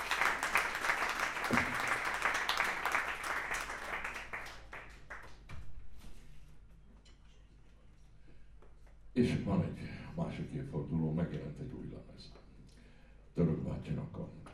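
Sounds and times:
concert audience applause for a young drummer: 0.0 - 5.4
speech: 9.2 - 12.4, 13.7 - 14.5.

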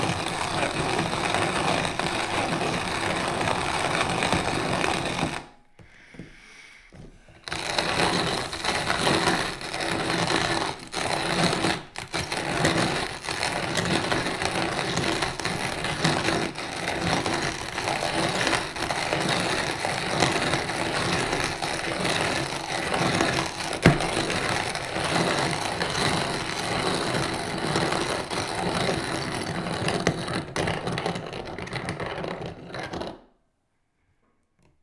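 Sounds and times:
laborious grinding with a manual coffee grinder: 0.0 - 5.6, 7.3 - 33.3
coffee beans loaded into a manual coffee grinder: 7.6 - 10.8
coffee grinder drawer pushed into place: 7.7 - 9.6.

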